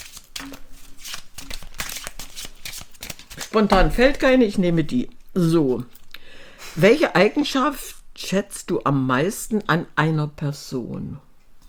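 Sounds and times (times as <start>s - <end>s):
deck of question cards being shuffled: 0.0s - 4.5s
speech: 3.6s - 6.0s, 6.8s - 11.3s.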